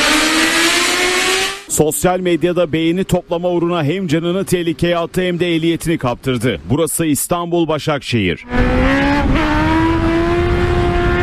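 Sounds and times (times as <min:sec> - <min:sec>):
motorcycle engine riding on its rear wheel in Başakşehir Istanbul: 0:00.0 - 0:04.9, 0:08.4 - 0:11.2
speech: 0:01.8 - 0:09.6.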